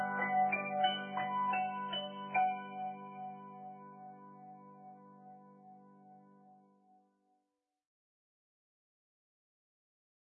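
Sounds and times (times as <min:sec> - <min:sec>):
piano: 0:00.0 - 0:07.0.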